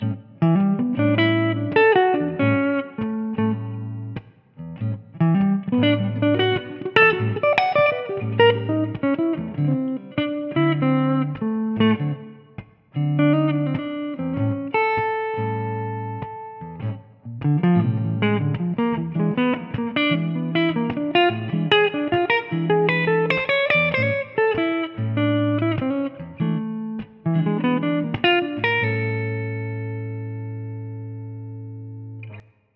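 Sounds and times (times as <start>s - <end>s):
blues music: 0.0s - 32.5s.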